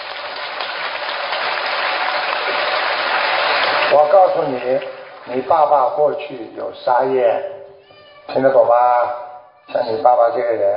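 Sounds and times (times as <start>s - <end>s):
audience applause: 0.0s - 6.1s
speech: 3.9s - 7.6s, 8.3s - 10.7s.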